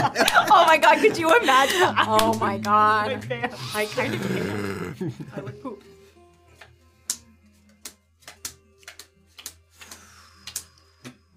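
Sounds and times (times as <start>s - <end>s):
laughter: 0.0s - 5.8s
speech: 0.2s - 5.9s
wet playing cards flipped onto a table: 7.1s - 10.7s.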